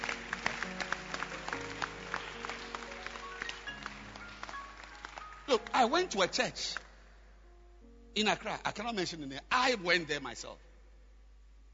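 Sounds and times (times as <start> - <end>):
people clapping hands: 0.0 - 7.0
speech: 5.5 - 6.8, 8.2 - 10.7.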